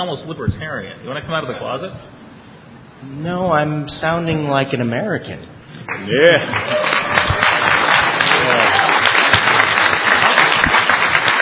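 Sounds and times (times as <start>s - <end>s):
speech: 0.0s - 2.2s, 3.0s - 6.8s
applause: 5.9s - 11.4s.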